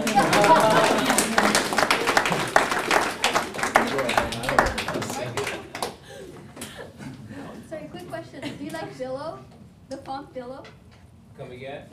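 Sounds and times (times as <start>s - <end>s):
clapping: 0.0s - 6.0s
laughter: 0.0s - 7.4s.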